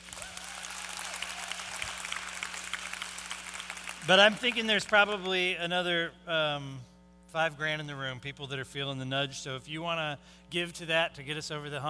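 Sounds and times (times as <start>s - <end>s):
audience applause: 0.0s - 5.3s
speech: 4.0s - 11.8s.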